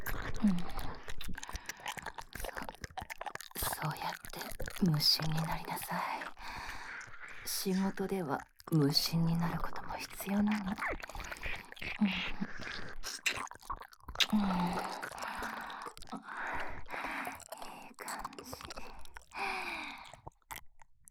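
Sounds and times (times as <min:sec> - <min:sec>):
ear licking: 0:00.0 - 0:07.5, 0:09.4 - 0:21.1
handjob, blowjob and cowgirl sex: 0:00.0 - 0:21.1
deep kissing: 0:12.6 - 0:13.5, 0:14.2 - 0:15.7.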